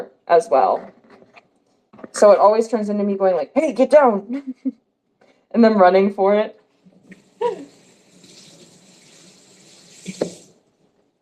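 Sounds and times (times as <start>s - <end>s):
speech: 0.0s - 1.0s, 2.1s - 4.8s, 5.5s - 6.6s
tap water running over a cutting board being rinsed: 6.9s - 10.8s.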